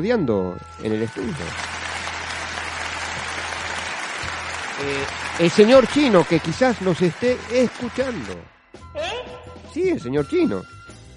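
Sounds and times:
speech: 0:00.0 - 0:01.8, 0:04.8 - 0:08.5, 0:09.8 - 0:10.7
crowd clapping: 0:00.8 - 0:08.6.

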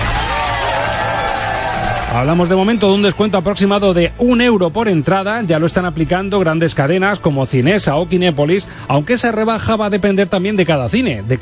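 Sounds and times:
crowd applause and cheering: 0:00.0 - 0:03.6
speech: 0:02.1 - 0:11.3.

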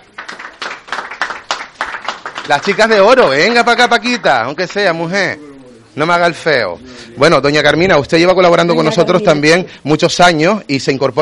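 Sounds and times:
rhythmic audience applause: 0:00.0 - 0:04.9
speech: 0:02.4 - 0:11.2.

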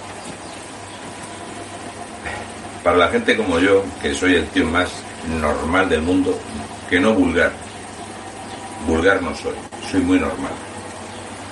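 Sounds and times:
washing machine running: 0:00.0 - 0:11.5
speech: 0:02.8 - 0:07.6, 0:09.0 - 0:10.7.

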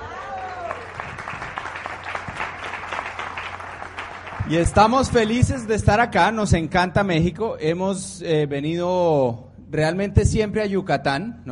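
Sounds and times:
audience applause: 0:00.0 - 0:05.4
speech: 0:04.5 - 0:11.4.

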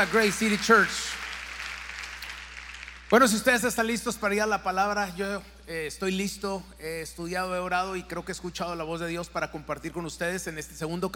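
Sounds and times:
speech: 0:00.0 - 0:01.2, 0:03.1 - 0:11.1
audience applause: 0:00.0 - 0:03.2.

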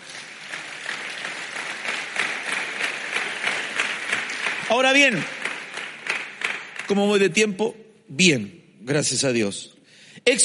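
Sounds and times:
audience clapping: 0:00.0 - 0:07.5
speech: 0:04.7 - 0:05.4, 0:06.9 - 0:10.4.

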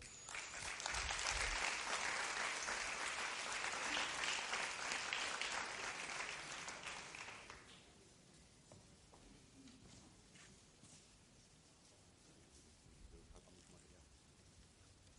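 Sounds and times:
sustained audience applause: 0:00.0 - 0:07.7.

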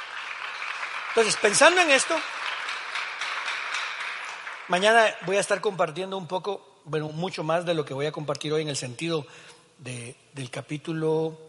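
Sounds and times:
audience applause: 0:00.0 - 0:05.4
speech: 0:01.2 - 0:02.4, 0:04.7 - 0:11.4.

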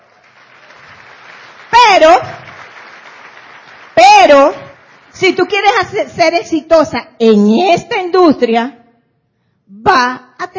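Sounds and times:
crowd clapping: 0:00.0 - 0:05.2
speech: 0:02.0 - 0:02.4, 0:04.3 - 0:04.6, 0:05.2 - 0:08.8, 0:09.8 - 0:10.5.

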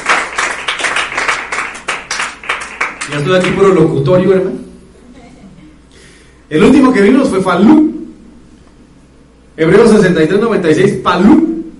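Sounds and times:
crowd clapping loudly: 0:00.0 - 0:04.0
speech: 0:03.1 - 0:04.6, 0:06.5 - 0:07.9, 0:09.6 - 0:11.5.

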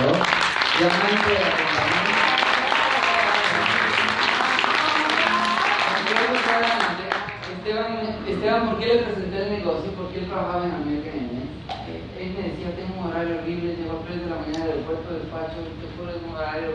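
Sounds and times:
audience applauding: 0:00.0 - 0:07.5
speech: 0:00.8 - 0:02.0, 0:07.7 - 0:16.7.

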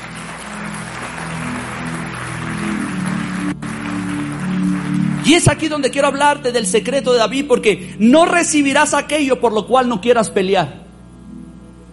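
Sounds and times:
audience applause: 0:00.0 - 0:06.2
low sustained musical tones: 0:00.0 - 0:11.9
speech: 0:05.3 - 0:10.8.

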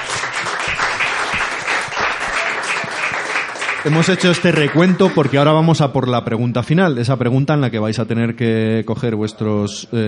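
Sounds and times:
applause: 0:00.0 - 0:05.7
speech: 0:03.8 - 0:10.0.

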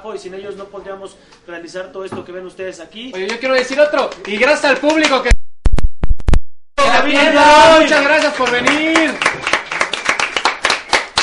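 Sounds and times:
speech: 0:00.0 - 0:05.4, 0:06.9 - 0:09.5
audience applause: 0:06.9 - 0:11.2.

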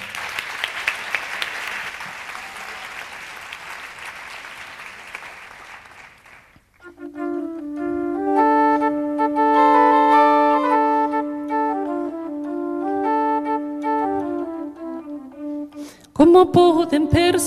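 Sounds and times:
room full of people applauding: 0:00.0 - 0:06.8
sustained musical notes from an instrument: 0:06.8 - 0:17.4
speech: 0:16.2 - 0:17.4.

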